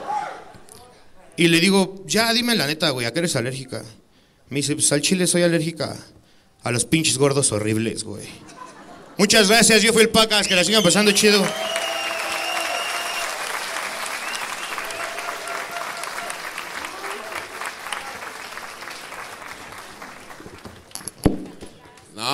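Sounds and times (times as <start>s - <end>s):
speech: 1.4s - 8.6s, 9.2s - 11.8s
laughter: 8.4s - 9.6s
applause: 11.1s - 21.2s.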